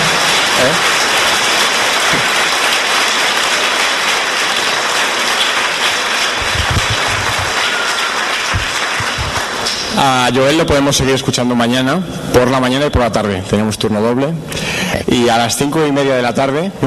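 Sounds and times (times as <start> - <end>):
audience applause: 0.0 - 10.3
speech: 10.0 - 16.8.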